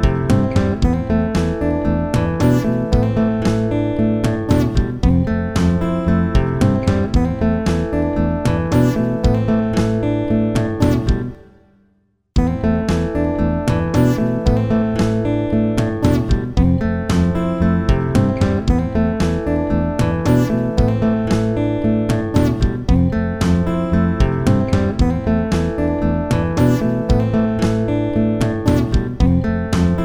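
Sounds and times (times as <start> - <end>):
simple guitar playing: 0.0 - 11.7, 12.4 - 30.0.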